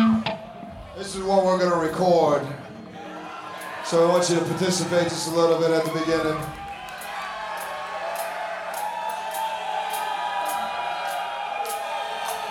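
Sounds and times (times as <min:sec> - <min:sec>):
speech: 0:01.0 - 0:02.6, 0:03.9 - 0:06.6
audience clapping hands: 0:04.2 - 0:12.5.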